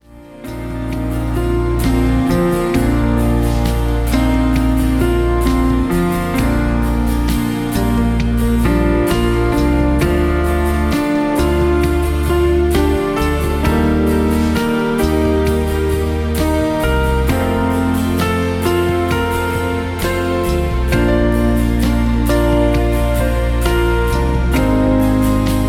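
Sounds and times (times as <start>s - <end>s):
relaxing piano music: 0.0s - 25.6s.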